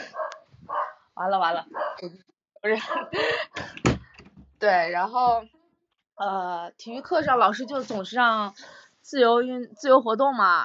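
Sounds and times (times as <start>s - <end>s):
small dog barking: 0.1s - 1.0s, 1.7s - 2.0s
speech: 1.2s - 3.9s, 4.6s - 5.6s, 6.2s - 10.6s.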